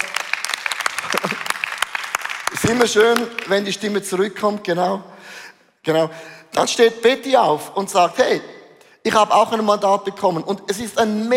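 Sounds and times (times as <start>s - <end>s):
audience applause: 0.0s - 3.5s
laughter: 1.0s - 1.6s
speech: 1.1s - 1.5s, 2.7s - 11.3s.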